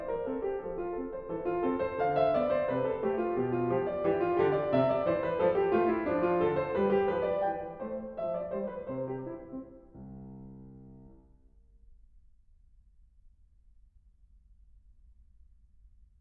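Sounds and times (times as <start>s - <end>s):
piano: 0.0s - 12.0s.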